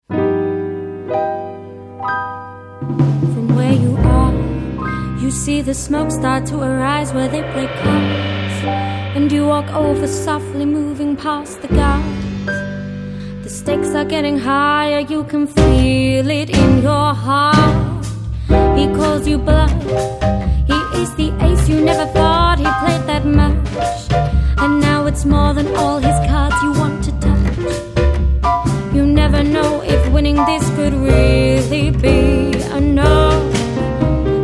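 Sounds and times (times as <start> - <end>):
jazz music: 0.1 - 34.4.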